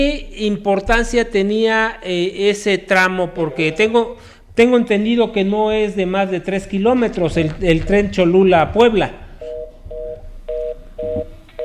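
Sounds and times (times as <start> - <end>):
speech: 0.0 - 9.2
telephone call cut-off beeps: 9.4 - 11.6.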